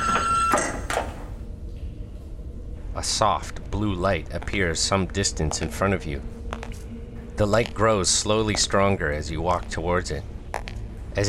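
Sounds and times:
elevator doors opening: 0.0 - 1.4
speech: 3.0 - 6.4, 7.4 - 10.3.

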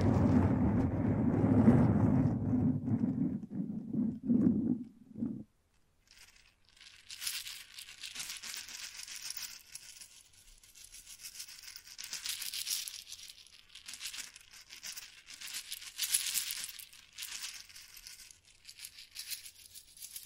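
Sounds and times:
microphone brushing and scratching: 0.0 - 5.5.

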